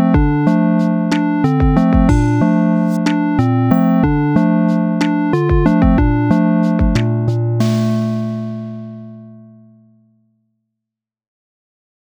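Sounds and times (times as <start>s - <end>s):
8-bit rainy city lofi music: 0.0s - 9.0s.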